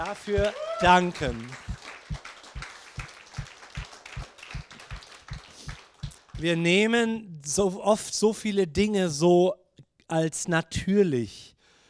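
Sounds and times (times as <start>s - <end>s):
speech: 0.0s - 1.7s, 6.4s - 11.5s
audience applause: 0.0s - 6.5s.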